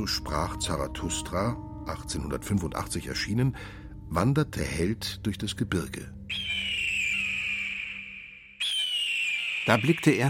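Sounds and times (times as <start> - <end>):
speech: 0.0 - 6.7, 9.6 - 10.2
sharp cry of an eagle circling overhead: 6.3 - 10.0.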